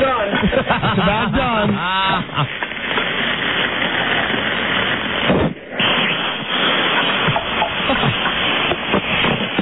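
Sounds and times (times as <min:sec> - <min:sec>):
laughter: 0:00.0 - 0:02.6, 0:07.6 - 0:08.5
phone sizzling in frying pan with bacon: 0:01.5 - 0:09.6.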